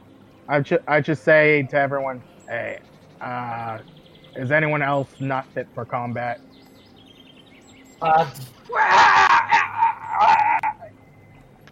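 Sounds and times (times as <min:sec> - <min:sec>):
speech: 0:00.5 - 0:06.5, 0:08.0 - 0:09.0
loud moaning scream sound effect: 0:08.7 - 0:10.9.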